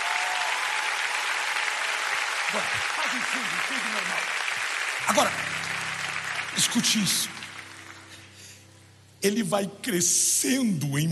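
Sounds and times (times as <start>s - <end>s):
audience applause: 0.0s - 8.6s
speech: 2.5s - 4.4s, 5.0s - 5.8s, 6.6s - 7.5s, 9.2s - 11.1s.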